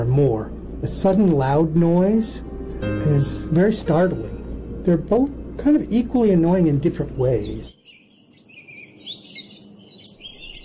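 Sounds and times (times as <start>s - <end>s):
speech: 0.0s - 7.8s
steady low rumble: 0.0s - 7.8s
birds chirping and warbling: 3.8s - 10.6s.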